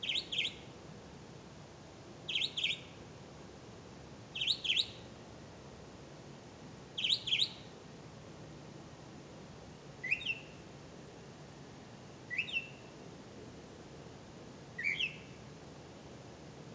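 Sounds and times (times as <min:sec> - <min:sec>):
bird chirping: 0:00.0 - 0:00.7, 0:02.3 - 0:03.0, 0:04.3 - 0:05.1, 0:07.0 - 0:07.7, 0:10.0 - 0:10.6, 0:12.3 - 0:12.9, 0:14.8 - 0:15.4
quiet background hiss: 0:00.0 - 0:16.7.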